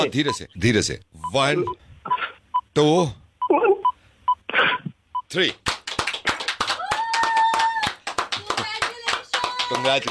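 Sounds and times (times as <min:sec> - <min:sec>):
speech: 0:00.0 - 0:01.8, 0:02.8 - 0:03.7, 0:05.3 - 0:05.7, 0:09.8 - 0:10.0
people clapping at a ribbon-cutting: 0:05.4 - 0:10.0.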